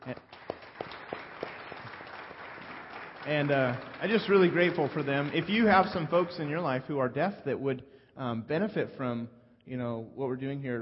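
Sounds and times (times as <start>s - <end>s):
audience applause: 0.0s - 6.9s
speech: 0.1s - 0.3s, 3.3s - 10.8s.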